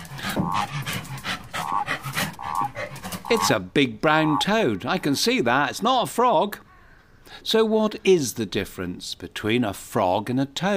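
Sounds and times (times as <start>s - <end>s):
dogs sniffing the ground: 0.0s - 3.6s
dogs panting: 0.0s - 5.2s
speech: 3.3s - 6.6s, 7.3s - 10.7s.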